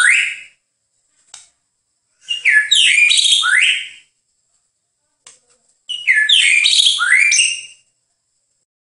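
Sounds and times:
bird song: 0:00.0 - 0:00.6, 0:02.2 - 0:04.1, 0:05.9 - 0:07.9.

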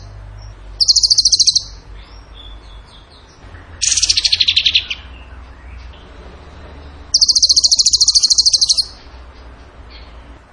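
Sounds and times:
bird trilling: 0:00.8 - 0:03.2, 0:03.8 - 0:05.4, 0:07.1 - 0:09.0.

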